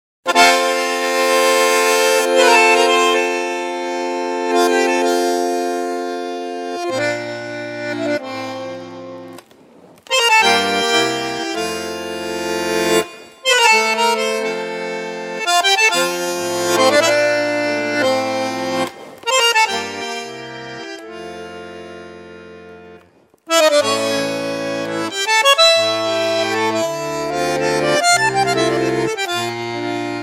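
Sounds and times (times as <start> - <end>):
bandoneon solo: 0.3 - 9.4, 10.1 - 30.2.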